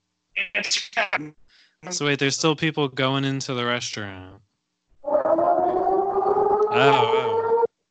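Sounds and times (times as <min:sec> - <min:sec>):
speech: 0:00.5 - 0:04.5, 0:06.8 - 0:07.2
alarm sound effect clip: 0:05.4 - 0:07.7.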